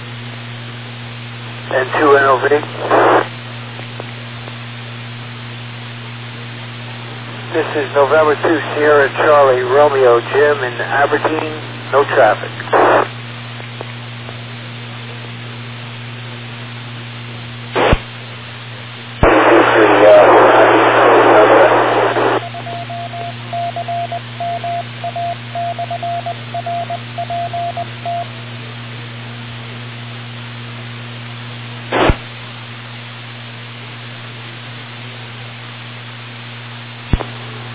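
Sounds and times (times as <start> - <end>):
amateur radio transmission hum: 1.5 - 4.9, 5.5 - 16.1, 16.8 - 28.9, 31.9 - 32.3, 37.0 - 37.7
amateur radio static burst: 1.7 - 3.3, 7.3 - 13.1, 17.8 - 18.1, 19.2 - 25.3, 31.9 - 32.3
speech: 1.7 - 3.3, 7.6 - 13.0
short even beeps on amateur radio: 22.4 - 28.3.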